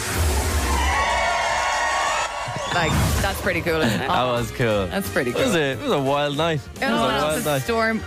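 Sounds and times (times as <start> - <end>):
crowd cheering loudly: 0.2 - 3.4
speech: 2.7 - 8.0.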